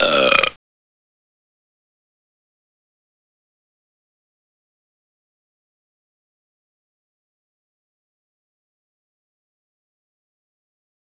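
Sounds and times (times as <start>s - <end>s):
person burping: 0.0s - 0.6s.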